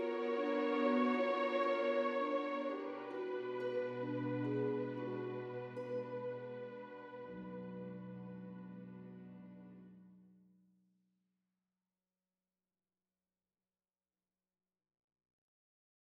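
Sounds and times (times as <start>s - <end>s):
epic orchestral music: 0.0s - 9.9s.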